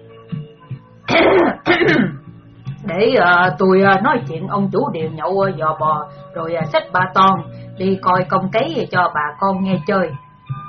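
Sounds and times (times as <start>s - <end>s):
throat clearing: 1.1s - 2.2s
speech: 1.8s - 2.2s, 3.0s - 10.2s.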